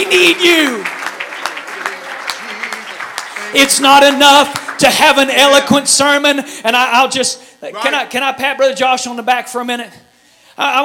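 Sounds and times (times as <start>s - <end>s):
speech: 0.0s - 0.9s, 3.5s - 10.0s, 10.6s - 10.8s
audience clapping hands: 0.0s - 6.0s.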